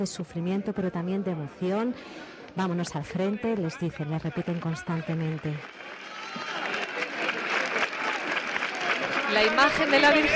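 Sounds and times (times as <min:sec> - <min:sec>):
speech: 0:00.0 - 0:06.0, 0:09.3 - 0:10.3
crowd applauding as procession image exits: 0:04.1 - 0:10.3.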